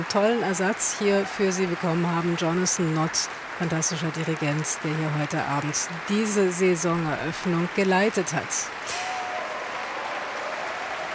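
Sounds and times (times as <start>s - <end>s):
speech: 0.0s - 9.1s
concert audience applause: 0.0s - 11.1s.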